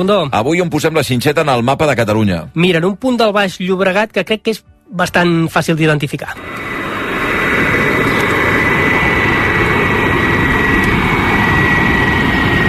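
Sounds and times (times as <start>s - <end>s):
speech: 0.0s - 6.7s
jet airplane landing at El Prat airport in Baix Llobregat: 6.2s - 12.6s.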